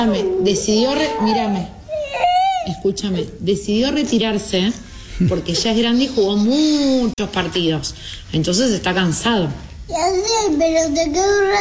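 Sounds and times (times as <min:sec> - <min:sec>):
speech: 0:00.0 - 0:01.8, 0:02.6 - 0:11.5
young girl crying about a football player retiring: 0:00.8 - 0:02.8.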